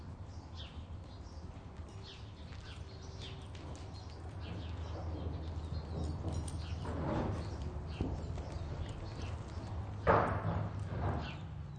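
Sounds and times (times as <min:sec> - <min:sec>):
horse shuffling in a barn: 0:01.0 - 0:11.5.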